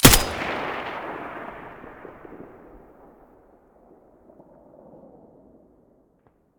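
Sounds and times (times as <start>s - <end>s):
M4A1 rifle muzzle gunshot: 0.0s - 2.6s.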